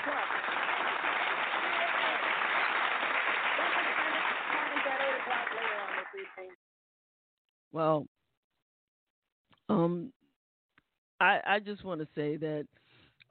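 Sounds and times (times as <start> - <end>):
cheering voices: 0.0 - 6.3
crowd applause sound effect: 0.0 - 6.6
speech: 7.8 - 8.1, 11.2 - 13.3.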